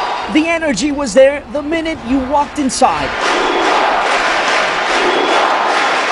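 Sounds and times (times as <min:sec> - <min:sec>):
stadium crowd roaring and cheering: 0:00.0 - 0:06.0
speech: 0:00.3 - 0:03.8.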